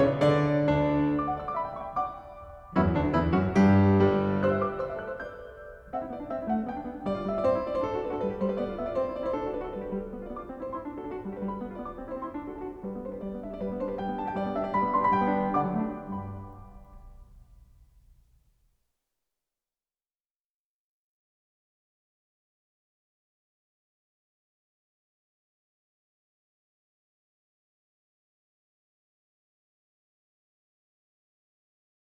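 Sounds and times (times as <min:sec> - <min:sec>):
piano sonata movement played vivace: 0:00.0 - 0:18.1.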